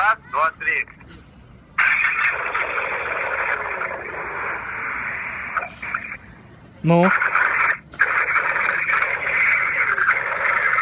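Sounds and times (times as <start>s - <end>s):
speech: 0.1s - 1.2s, 6.8s - 7.3s
engine revving over a phone line: 1.8s - 6.3s, 7.0s - 10.8s.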